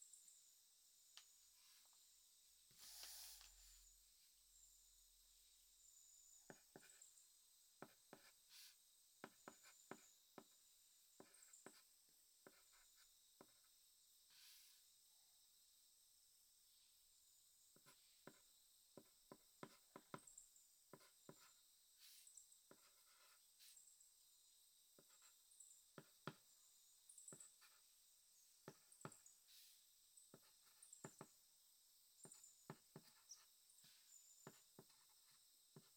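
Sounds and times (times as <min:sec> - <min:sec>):
diary writing sounds: 0:02.7 - 0:03.9, 0:06.5 - 0:07.1, 0:07.8 - 0:13.7, 0:17.7 - 0:23.8, 0:25.0 - 0:25.4, 0:26.0 - 0:26.5, 0:27.2 - 0:27.9, 0:28.6 - 0:29.7, 0:30.3 - 0:31.4, 0:32.2 - 0:35.9.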